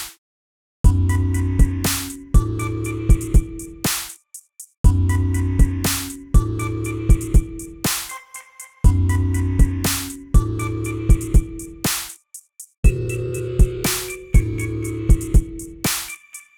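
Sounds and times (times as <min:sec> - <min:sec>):
sine wave tone: 0:00.9 - 0:03.7, 0:04.9 - 0:11.7, 0:12.9 - 0:16.5.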